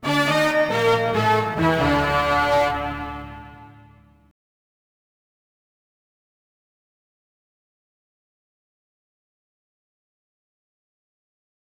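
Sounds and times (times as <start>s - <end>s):
mission failed music jingle: 0.0s - 4.0s.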